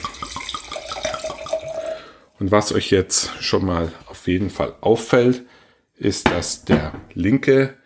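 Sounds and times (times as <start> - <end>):
port wine poured into a glass: 0.0 - 2.2
speech: 2.4 - 7.8.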